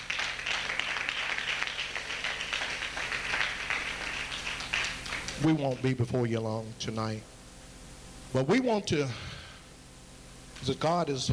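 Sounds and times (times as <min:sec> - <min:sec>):
audience hand clapping: 0:00.0 - 0:06.1
speech: 0:05.4 - 0:07.4, 0:08.3 - 0:09.3, 0:10.6 - 0:11.3.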